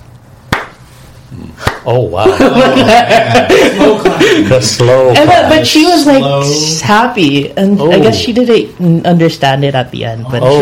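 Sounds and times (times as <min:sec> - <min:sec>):
single sharp hand clap: 0:00.5 - 0:00.8, 0:01.6 - 0:01.9
speech: 0:01.3 - 0:10.6
laughter: 0:02.2 - 0:05.6.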